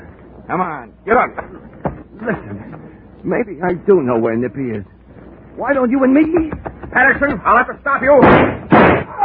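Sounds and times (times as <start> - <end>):
speech: 0.5 - 4.9, 5.6 - 8.6
gunshot fired low in darkness in a radio drama: 8.2 - 9.1.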